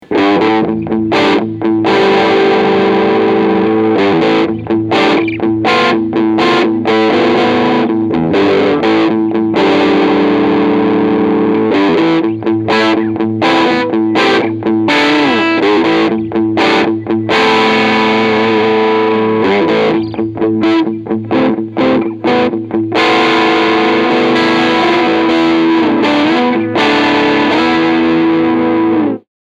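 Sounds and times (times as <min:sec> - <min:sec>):
medium gain distorted guitar: 0:00.0 - 0:29.3.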